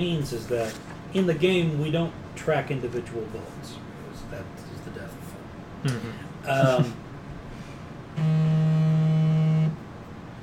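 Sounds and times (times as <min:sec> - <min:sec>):
speech: 0:00.0 - 0:05.2, 0:05.8 - 0:07.0, 0:08.2 - 0:08.7
phone emergency alert alarm vibration: 0:08.2 - 0:09.8.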